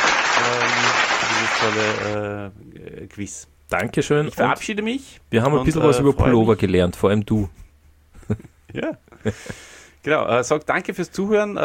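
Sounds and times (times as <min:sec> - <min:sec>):
applause for a quiz: 0:00.0 - 0:02.2
speech: 0:01.6 - 0:07.6, 0:08.3 - 0:11.6.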